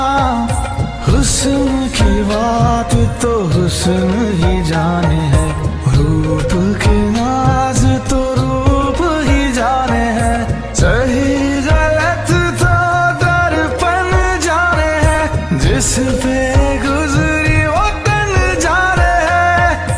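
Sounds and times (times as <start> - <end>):
romantic Hindi song ringtone: 0.0 - 19.9.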